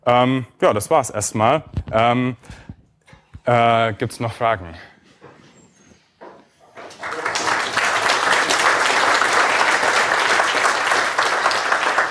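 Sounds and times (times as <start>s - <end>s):
speech: 0.0s - 2.6s, 3.4s - 4.9s
audience applause after a talk: 6.8s - 12.0s.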